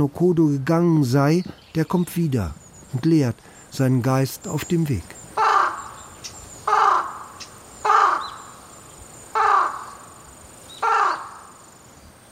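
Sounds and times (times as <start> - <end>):
speech: 0.0 - 5.2
faint steady hiss: 0.0 - 12.3
crow cawing: 5.2 - 11.7.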